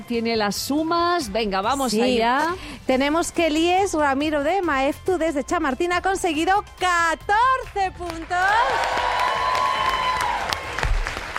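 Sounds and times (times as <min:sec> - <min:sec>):
speech: 0:00.1 - 0:09.1
studio audience applause on a Spanish-language quiz show: 0:08.1 - 0:11.3.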